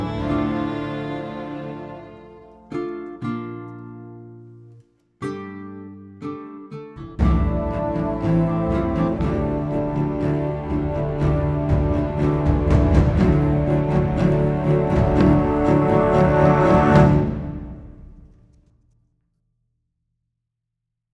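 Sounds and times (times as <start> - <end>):
classical cinematic underscore: 0.0 - 3.8, 7.2 - 18.5.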